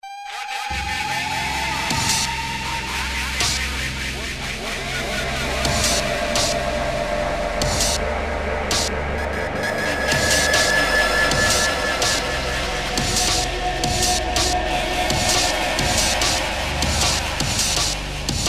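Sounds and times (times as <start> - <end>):
noise: 0.0 - 18.4.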